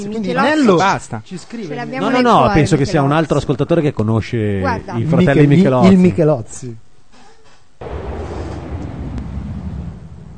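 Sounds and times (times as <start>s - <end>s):
speech: 0.0s - 6.8s
loud rushing wind sound effect: 7.8s - 10.3s.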